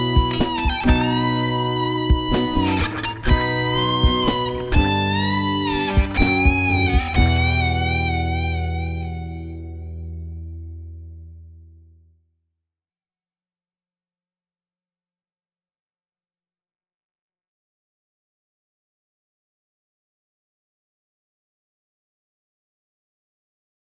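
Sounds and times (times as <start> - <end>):
dry solo instrument: 0.0 - 10.1.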